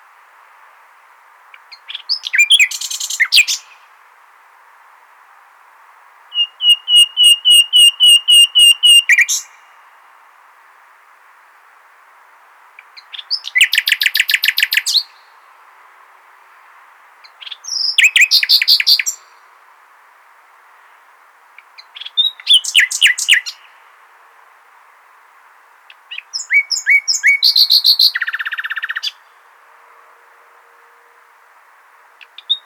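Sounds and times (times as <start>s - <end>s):
common nightingale singing: 1.5s - 3.9s, 6.3s - 9.8s, 12.8s - 15.4s, 17.2s - 19.5s, 20.8s - 23.8s, 25.8s - 29.4s, 32.1s - 32.6s.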